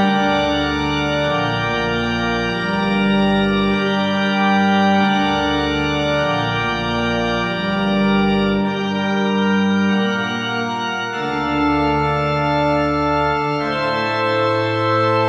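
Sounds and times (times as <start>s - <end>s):
organ prelude: 0.0s - 15.2s.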